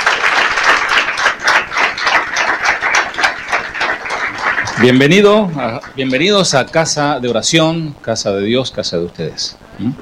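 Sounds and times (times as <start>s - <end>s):
audience applause: 0.0s - 6.0s
speech: 4.8s - 9.9s.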